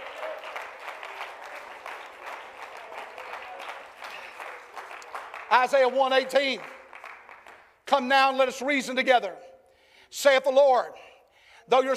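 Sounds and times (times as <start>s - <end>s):
audience clapping hands: 0.0s - 8.1s
speech: 5.5s - 6.7s, 7.9s - 9.4s, 10.1s - 11.0s, 11.7s - 11.9s.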